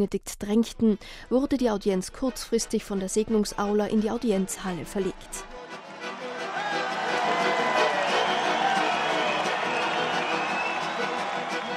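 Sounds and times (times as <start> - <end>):
speech: 0.0 - 5.6
crowd cheering in audience hall: 5.4 - 11.7.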